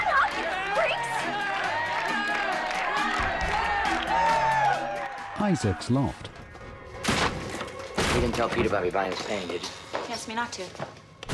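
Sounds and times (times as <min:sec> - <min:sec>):
students applauding: 0:00.0 - 0:05.4
crowd of students cheering and whooping: 0:00.0 - 0:06.2
speech: 0:05.4 - 0:06.4, 0:08.2 - 0:10.9.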